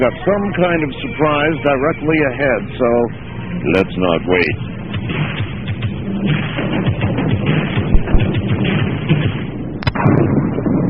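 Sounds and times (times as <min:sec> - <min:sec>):
speech: 0:00.0 - 0:05.4, 0:06.2 - 0:06.7
thunder clap: 0:06.3 - 0:10.8.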